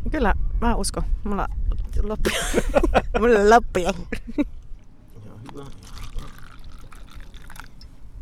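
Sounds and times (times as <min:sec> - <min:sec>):
speech: 0:00.1 - 0:04.6
laughter: 0:02.3 - 0:04.5
drink pouring into glasses: 0:04.8 - 0:08.0.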